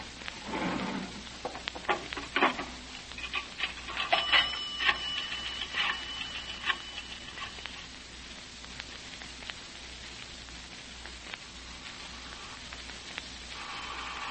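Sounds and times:
low hum: 0.0s - 14.2s
clattering clicks and knocks: 1.4s - 7.6s
telephone bell ringing: 4.0s - 7.8s.

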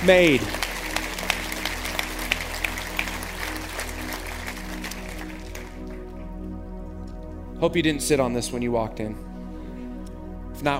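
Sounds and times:
speech: 0.0s - 0.6s, 7.6s - 9.3s, 10.6s - 10.7s
audience applauding: 0.0s - 6.2s.

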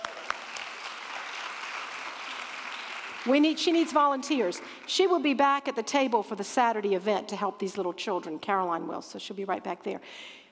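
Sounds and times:
sharp individual claps: 0.0s - 3.3s
audience applause: 0.0s - 3.8s
speech: 3.2s - 10.4s.

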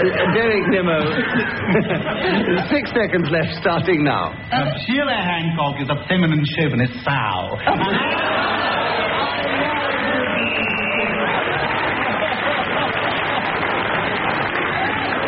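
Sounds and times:
crowd murmur and lively reactions: 0.0s - 5.0s, 7.4s - 15.2s
laughter: 0.0s - 5.1s, 7.4s - 15.2s
speech: 0.0s - 8.8s
large audience clapping: 7.8s - 15.2s.

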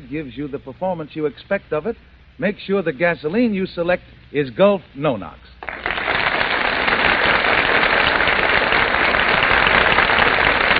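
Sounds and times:
speech: 0.1s - 5.6s
theater audience applause: 5.6s - 10.7s.

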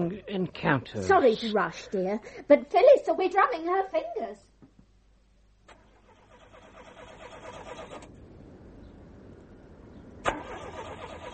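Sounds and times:
speech: 0.0s - 4.5s
car engine struggling to start in damp: 5.7s - 8.2s, 10.2s - 11.3s.

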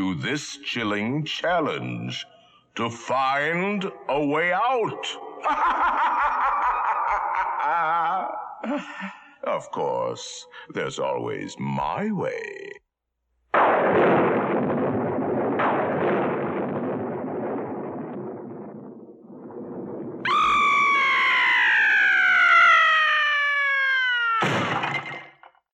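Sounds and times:
speech: 0.0s - 6.4s, 8.6s - 12.8s
laughter: 5.4s - 9.4s
thunder sound effect: 13.6s - 21.1s
high wailing scream-like tone: 20.3s - 24.7s.

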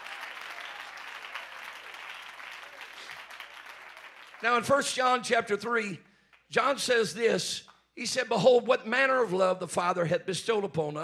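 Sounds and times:
audience clapping hands: 0.0s - 6.5s
speech: 4.4s - 11.0s.

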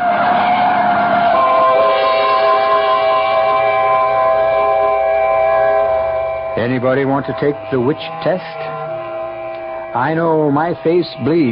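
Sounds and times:
truck engine rumbling: 0.0s - 11.4s
truck tyres screeching while skidding: 5.0s - 11.4s
speech: 6.6s - 8.7s, 10.0s - 11.4s.

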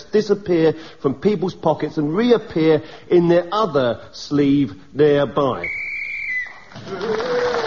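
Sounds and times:
speech: 0.1s - 5.8s, 6.8s - 7.5s
whistle marking sixty seconds up: 5.6s - 6.7s.

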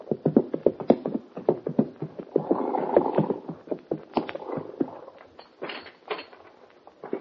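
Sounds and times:
horses' hooves clip-clopping: 0.0s - 7.1s.

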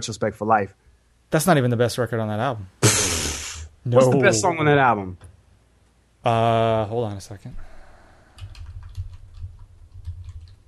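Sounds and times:
speech: 0.0s - 2.8s, 3.8s - 5.3s, 6.2s - 7.7s
computer keyboard typing: 8.4s - 10.6s.

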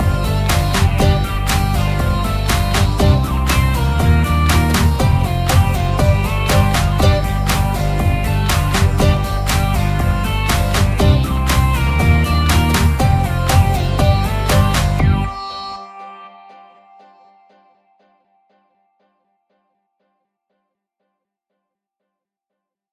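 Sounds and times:
low electro music: 0.0s - 18.2s.

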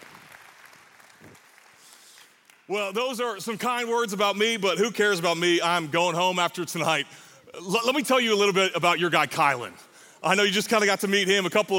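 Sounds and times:
audience applause: 0.0s - 2.7s
speech: 2.7s - 11.7s.

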